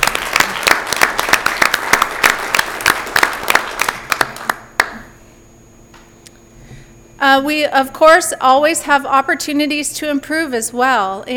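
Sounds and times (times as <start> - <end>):
audience applause: 0.0 - 5.0
speech: 7.2 - 11.3.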